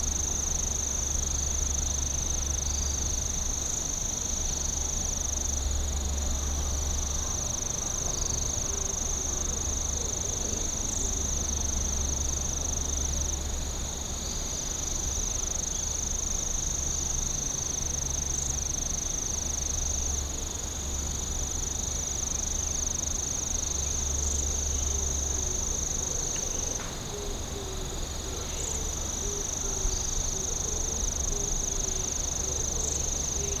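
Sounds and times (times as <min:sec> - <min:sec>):
insect song steady high whine: 0:00.0 - 0:33.5.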